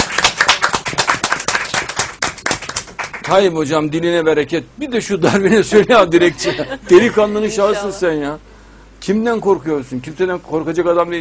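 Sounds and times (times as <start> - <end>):
applause: 0.0 - 3.5
speech: 3.3 - 11.2
laughter: 5.2 - 8.0.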